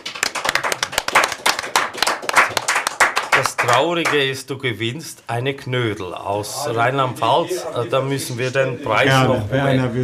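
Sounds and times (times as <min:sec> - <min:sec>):
audience applause: 0:00.0 - 0:04.3
speech: 0:03.4 - 0:10.0.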